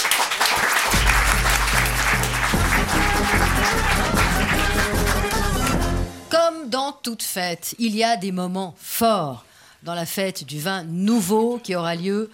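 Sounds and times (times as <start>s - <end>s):
audience applause: 0.0s - 6.1s
speech: 6.9s - 12.3s.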